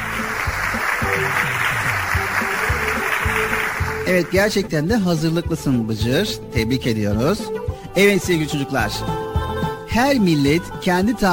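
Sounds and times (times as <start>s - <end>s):
applause: 0.0s - 4.4s
speech: 4.1s - 9.3s, 10.0s - 11.3s.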